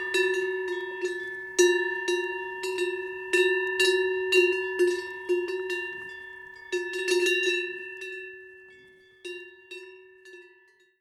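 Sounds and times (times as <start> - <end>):
cow bells: 0.0 - 10.9.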